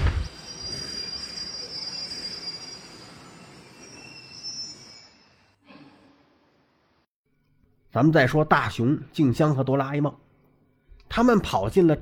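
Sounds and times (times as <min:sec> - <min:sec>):
train brakes squealing: 0:00.3 - 0:05.6
speech: 0:07.9 - 0:10.2, 0:11.1 - 0:12.0.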